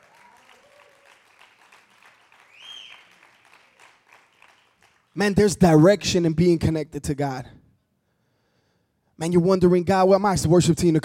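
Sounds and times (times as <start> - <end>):
church congregation clapping: 0.0 - 5.6
speech: 5.2 - 7.6, 9.2 - 11.0.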